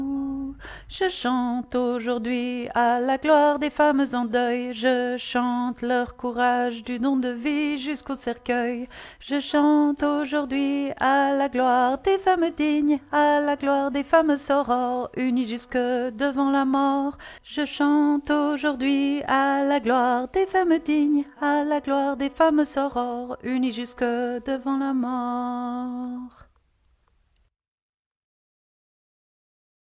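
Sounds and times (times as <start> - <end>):
mezzo-soprano singing chorale: 0.0 - 26.5.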